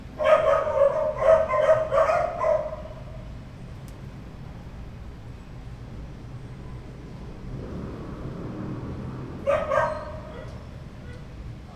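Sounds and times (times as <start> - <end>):
dog barking: 0.2 - 3.2, 9.4 - 11.3.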